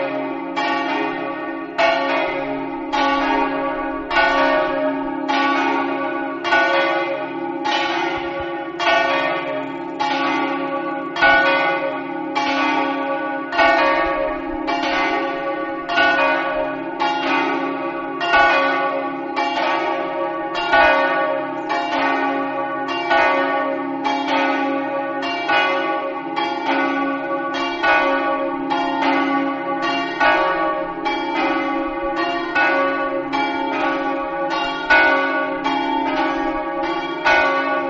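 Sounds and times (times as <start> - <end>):
bells ringing: 0.0 - 37.8.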